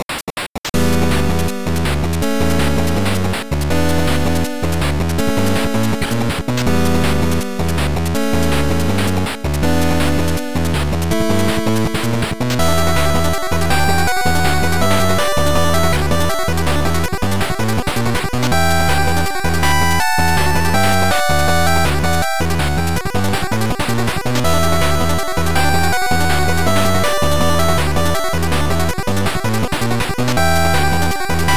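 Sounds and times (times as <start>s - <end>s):
8-bit galactic battle game music: 0.8s - 31.5s.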